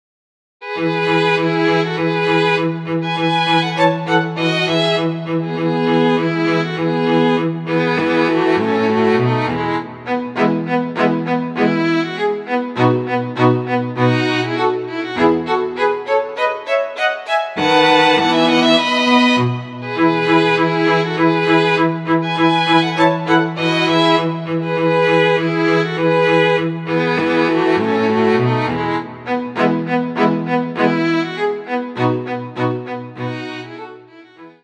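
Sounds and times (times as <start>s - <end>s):
string quartet in E major with all voices: 0.6s - 34.6s.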